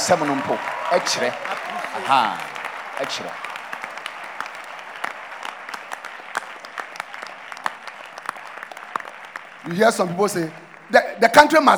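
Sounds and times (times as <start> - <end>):
audience clapping: 0.0 - 11.7
speech: 0.1 - 3.5, 9.7 - 11.7.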